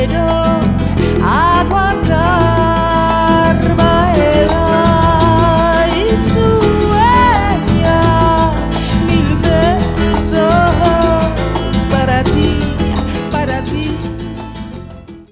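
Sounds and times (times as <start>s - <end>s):
Spanish guitar Latin music: 0.0s - 15.2s.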